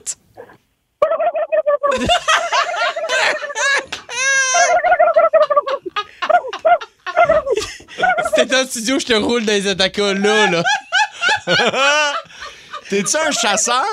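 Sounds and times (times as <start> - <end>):
speech: 0.0 - 0.2, 1.9 - 2.5, 8.5 - 10.8, 11.4 - 12.2, 12.9 - 13.9
person imitating turkey gobble: 1.0 - 2.0, 4.4 - 8.5
laughter: 1.9 - 13.9.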